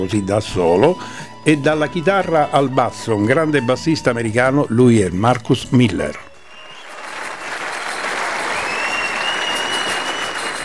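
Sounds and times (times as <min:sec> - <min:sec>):
speech: 0:00.0 - 0:06.3
live concert audience applause: 0:06.4 - 0:10.6.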